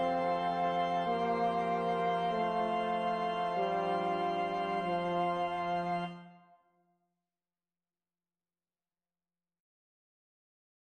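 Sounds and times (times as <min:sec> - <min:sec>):
five wind instruments: 0:00.0 - 0:06.4
organ: 0:00.0 - 0:06.4.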